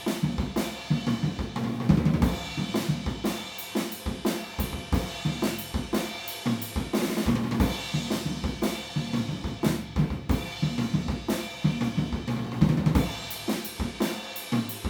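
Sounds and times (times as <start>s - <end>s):
drums recorded with PZM omni microphone: 0.0s - 14.8s.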